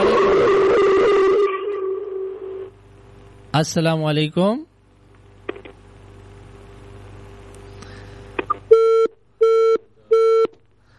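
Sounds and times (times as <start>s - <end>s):
low telephone line hum: 0.0s - 3.5s, 4.6s - 10.9s
speech: 3.6s - 4.7s
telephone busy tone beeps after a call is cut off: 8.7s - 10.5s.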